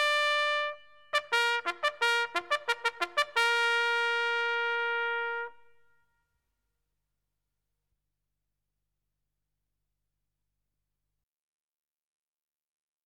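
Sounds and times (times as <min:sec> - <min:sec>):
military trumpet calls: 0:00.0 - 0:06.0.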